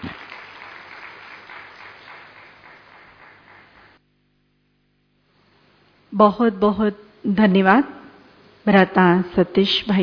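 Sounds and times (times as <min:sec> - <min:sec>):
audience applause: 0:00.0 - 0:04.0
speech: 0:06.2 - 0:08.0, 0:08.6 - 0:10.0.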